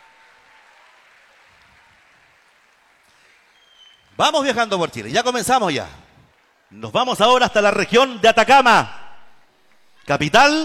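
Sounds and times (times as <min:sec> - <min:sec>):
crowd applause: 0:00.0 - 0:04.7
speech: 0:04.2 - 0:06.0, 0:06.7 - 0:09.0, 0:10.1 - 0:10.6.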